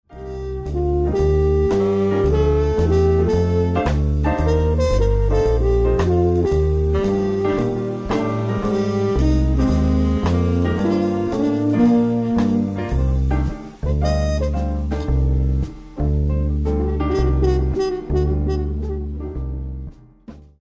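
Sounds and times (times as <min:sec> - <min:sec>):
traditional jazz: 0:00.1 - 0:20.6.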